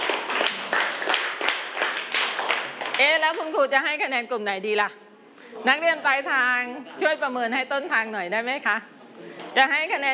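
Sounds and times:
students in a classroom clapping for a group of classmates: 0:00.0 - 0:03.5
speech: 0:03.0 - 0:10.1.

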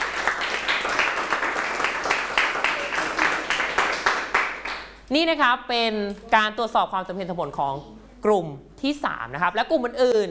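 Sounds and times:
classroom applause: 0:00.0 - 0:05.1
speech: 0:05.1 - 0:10.2.

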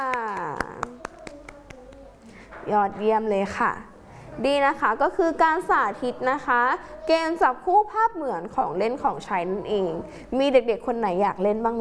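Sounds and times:
hands clapping for a young child: 0:00.0 - 0:02.1
speech: 0:02.7 - 0:11.7.

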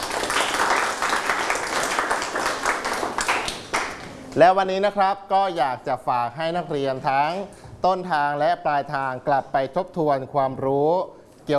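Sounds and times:
crowd clapping: 0:00.0 - 0:04.3
speech: 0:04.4 - 0:11.5.

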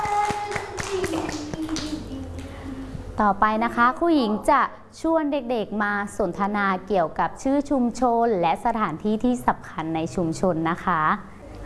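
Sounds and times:
children clapping: 0:00.0 - 0:02.5
speech: 0:03.2 - 0:11.6.

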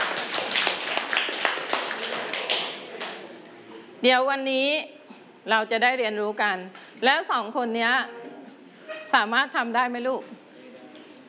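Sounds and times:
children clapping for a classmate: 0:00.0 - 0:03.3
speech: 0:04.0 - 0:08.2, 0:09.1 - 0:10.4.

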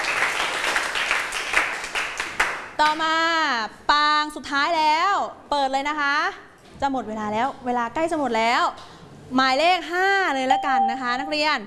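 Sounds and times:
students clapping for themselves in a Thai classroom: 0:00.0 - 0:02.6
speech: 0:02.8 - 0:11.6.

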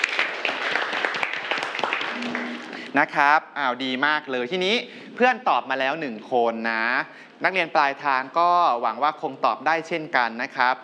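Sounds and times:
students clapping in a classroom: 0:00.0 - 0:02.9
speech: 0:02.9 - 0:10.8.

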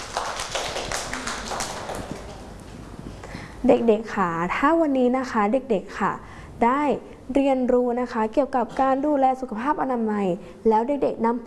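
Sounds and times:
children clapping hands: 0:00.0 - 0:02.6
speech: 0:03.6 - 0:11.4.

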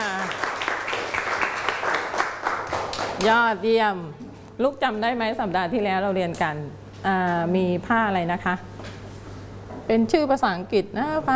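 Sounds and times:
clapping hands: 0:00.0 - 0:03.4
speech: 0:03.2 - 0:08.7, 0:09.9 - 0:11.3.

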